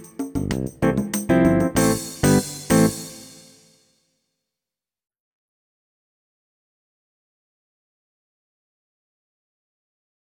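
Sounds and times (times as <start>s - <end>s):
open hi-hat: 0.0s - 3.6s.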